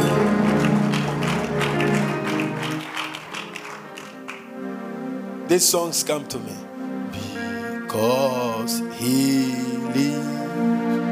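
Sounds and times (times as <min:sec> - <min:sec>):
crowd clapping: 0:00.0 - 0:04.7
sustained musical chords: 0:00.0 - 0:11.1
speech: 0:05.5 - 0:06.7, 0:08.0 - 0:10.3.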